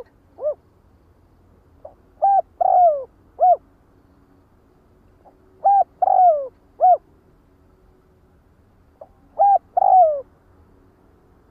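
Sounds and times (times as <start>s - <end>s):
spotted dove cooing: 0.0s - 0.6s, 1.8s - 3.6s, 5.2s - 7.0s, 9.0s - 10.3s.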